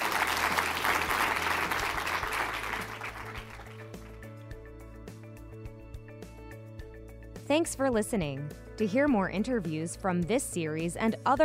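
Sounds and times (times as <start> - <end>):
audience applause: 0.0 - 4.2
speech: 7.5 - 11.4.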